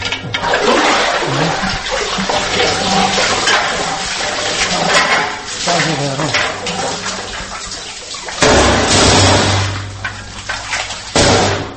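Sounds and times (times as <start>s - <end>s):
water gushing from an artesian well: 0.0s - 11.7s.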